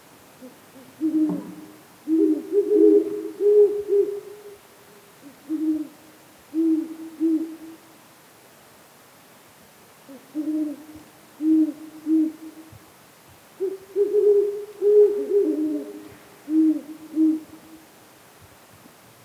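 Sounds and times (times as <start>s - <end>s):
Great Horned Owl Bubo virginianus hooting: 0.4s - 4.6s, 5.2s - 7.6s, 10.1s - 12.5s, 13.6s - 17.8s.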